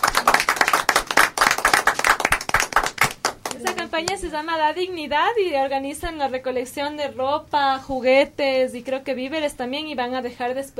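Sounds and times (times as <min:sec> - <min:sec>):
audience clapping: 0:00.0 - 0:04.2
speech: 0:04.0 - 0:10.7.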